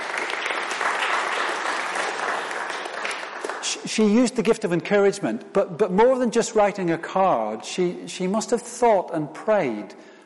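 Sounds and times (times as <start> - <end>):
audience applause: 0.0 - 3.8
speech: 3.8 - 10.1.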